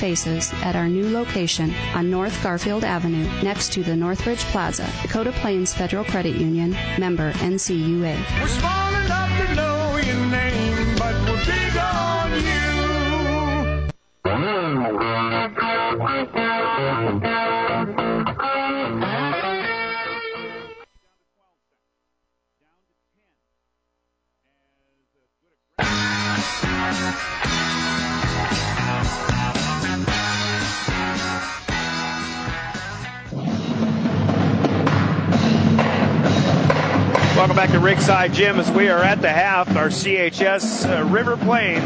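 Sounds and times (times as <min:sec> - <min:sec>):
speech: 0:00.0 - 0:10.6, 0:14.7 - 0:17.5, 0:26.4 - 0:30.1, 0:37.4 - 0:41.8
pep band playing: 0:00.0 - 0:20.8, 0:25.8 - 0:41.8
high school drumline percussion: 0:25.8 - 0:41.8.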